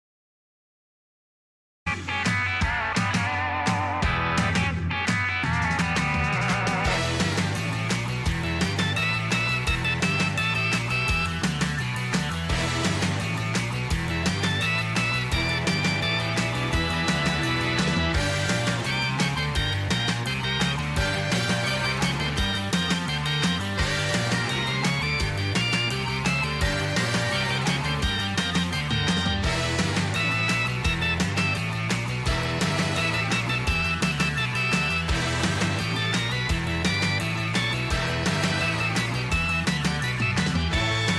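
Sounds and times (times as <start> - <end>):
surf rock music: 1.9 - 41.1
organ: 2.1 - 41.1.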